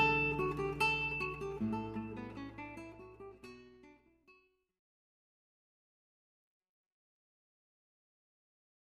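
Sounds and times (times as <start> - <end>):
classical wedding guitar music: 0.0 - 4.5.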